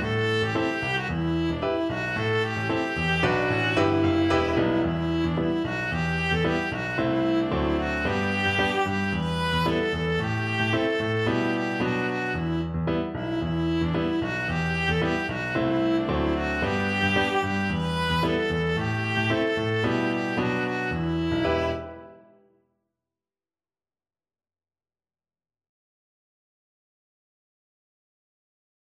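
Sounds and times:
viola: 0.0 - 22.4.

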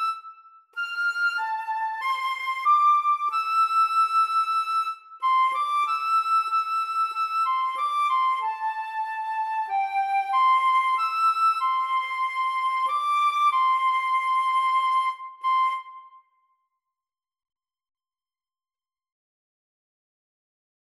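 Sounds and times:
flute duet: 0.0 - 16.3.

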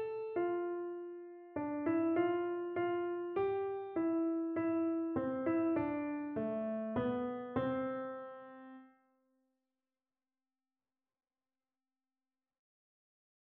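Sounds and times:
Christmas carol on keyboard: 0.0 - 8.8.

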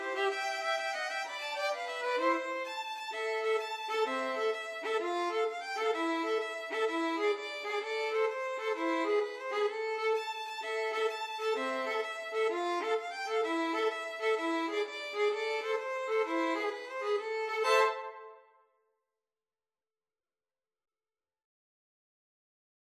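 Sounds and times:
two violins playing a tarantella: 0.0 - 18.2.

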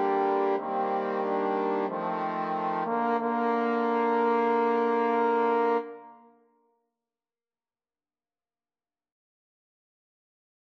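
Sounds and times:
trombone quartet playing: 0.0 - 6.0.

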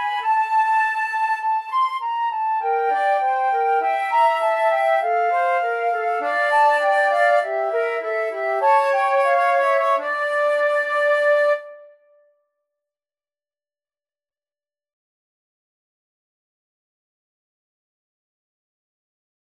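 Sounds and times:
flute duet: 0.0 - 12.1.

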